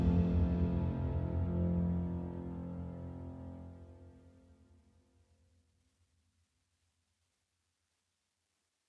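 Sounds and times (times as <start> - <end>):
drum break opener: 0.0 - 1.9.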